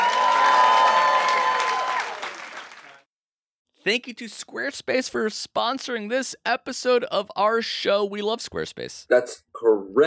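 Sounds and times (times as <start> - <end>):
audience applause: 0.0 - 3.1
speech: 3.8 - 10.0.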